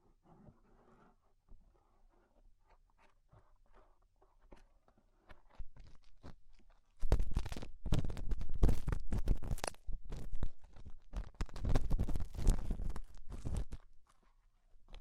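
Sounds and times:
ear cleaning with rhinestones and clay being removed: 0:05.4 - 0:14.2.

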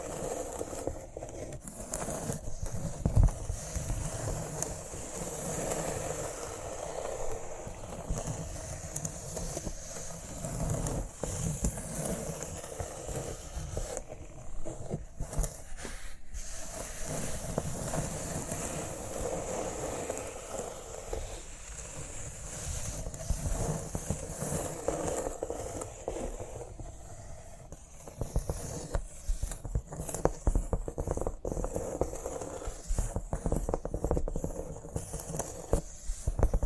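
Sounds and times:
scratching and rubbing cork: 0:00.0 - 0:36.6.

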